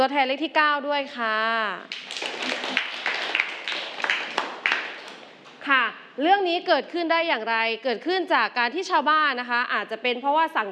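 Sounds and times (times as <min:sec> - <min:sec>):
speech: 0:00.0 - 0:02.9, 0:05.6 - 0:10.7
classroom applause: 0:01.9 - 0:05.3.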